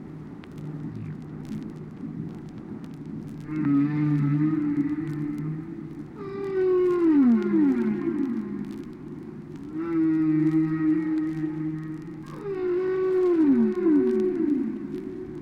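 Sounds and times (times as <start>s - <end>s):
whale song: 3.4s - 15.4s.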